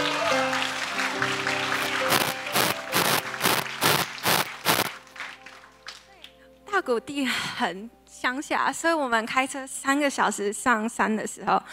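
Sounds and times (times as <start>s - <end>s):
audience clapping in welcome: 0.0s - 6.1s
sustained musical tones: 1.8s - 4.9s
speech: 6.9s - 11.7s.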